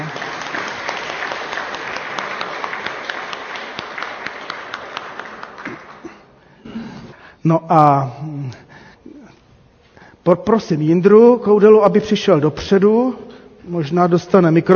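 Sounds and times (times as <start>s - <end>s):
audience applause: 0.0s - 6.3s
speech: 7.4s - 8.2s, 10.3s - 14.7s.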